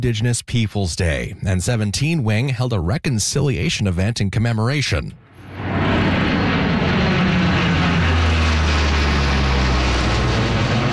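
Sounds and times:
speech: 0:00.0 - 0:05.2
Hercules military aircraft flyover: 0:05.2 - 0:10.9.

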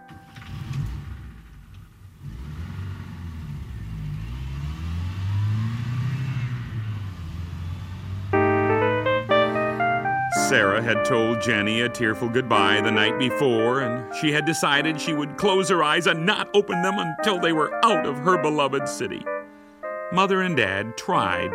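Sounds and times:
car driving off, engine accelerating: 0:00.0 - 0:16.0
speech: 0:10.5 - 0:19.3, 0:20.1 - 0:21.5.

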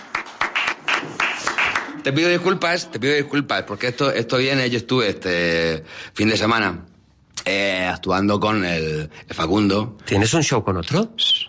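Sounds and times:
audience applause: 0:00.0 - 0:02.1
speech: 0:02.0 - 0:11.4.

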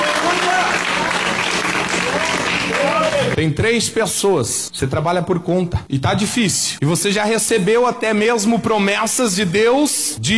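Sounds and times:
church audience clapping: 0:00.0 - 0:03.4
speech: 0:03.4 - 0:10.3.

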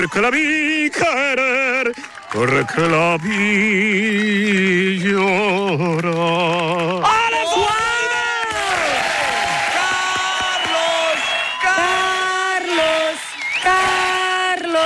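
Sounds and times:
speech: 0:00.0 - 0:07.7
audience ovation with cheering and applause: 0:00.0 - 0:14.8
crowd whoops and yells: 0:01.8 - 0:03.5, 0:07.0 - 0:14.8.

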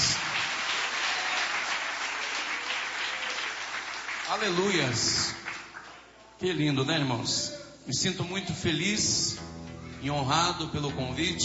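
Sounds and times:
audience clapping: 0:00.0 - 0:06.2
speech: 0:04.3 - 0:05.4, 0:06.4 - 0:11.4.

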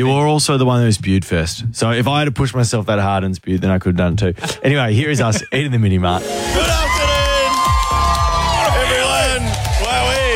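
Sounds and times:
speech: 0:00.0 - 0:06.9
crowd cheering and whooping: 0:06.2 - 0:10.3.

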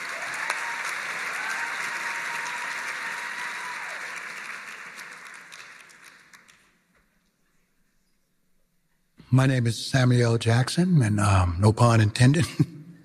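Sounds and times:
audience applause: 0:00.0 - 0:06.8
speech: 0:09.3 - 0:12.7.

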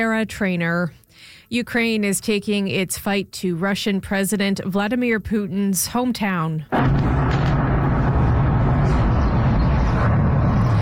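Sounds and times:
speech: 0:00.0 - 0:07.1
explosions in St. Petersburg: 0:06.7 - 0:10.8.

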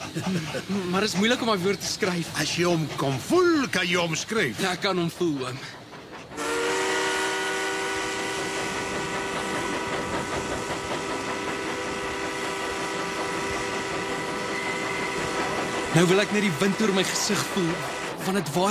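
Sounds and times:
laughter: 0:00.0 - 0:01.4
steam train running on rails: 0:00.0 - 0:18.6
speech: 0:00.1 - 0:05.8, 0:15.9 - 0:18.6
steam train whistle: 0:06.4 - 0:18.1.

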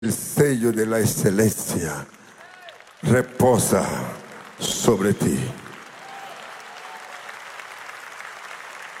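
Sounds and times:
speech: 0:00.0 - 0:02.2, 0:03.0 - 0:05.6
crowd applause: 0:01.9 - 0:08.9.

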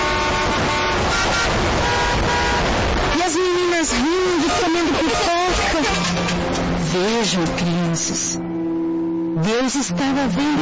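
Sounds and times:
car horn tooting: 0:00.0 - 0:07.6
cars rushing by: 0:00.0 - 0:10.5
street traffic roar: 0:00.0 - 0:10.5
speech: 0:07.3 - 0:08.4, 0:09.4 - 0:10.5.

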